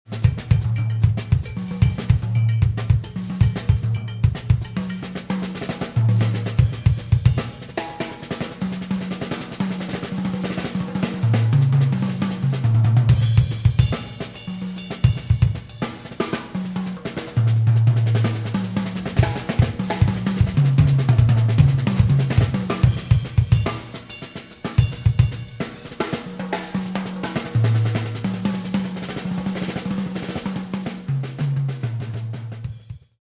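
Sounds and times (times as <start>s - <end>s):
drum solo: 0.0s - 33.2s.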